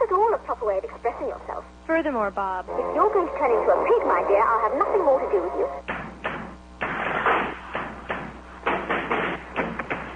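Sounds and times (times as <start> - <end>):
speech: 0.7 - 5.9
knocking: 5.8 - 10.1.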